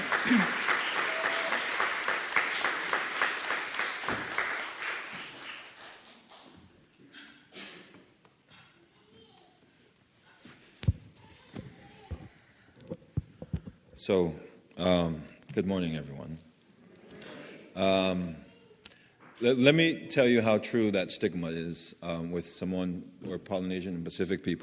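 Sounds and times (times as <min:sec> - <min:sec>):
audience applause greeting a guest speaker: 0:00.0 - 0:06.5
speech: 0:00.2 - 0:00.6, 0:14.1 - 0:16.5, 0:17.8 - 0:18.4, 0:19.4 - 0:24.6.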